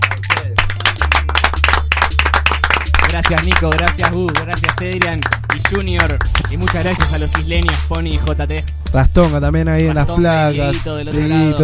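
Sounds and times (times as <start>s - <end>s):
applause: 0.0s - 8.4s
speech: 3.1s - 11.6s.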